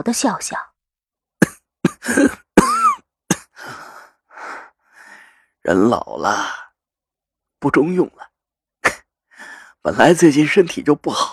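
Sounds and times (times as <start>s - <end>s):
speech: 0.0s - 0.7s, 2.0s - 2.4s, 5.6s - 6.6s, 7.6s - 8.3s, 9.8s - 11.3s
fit of coughing: 1.4s - 3.6s.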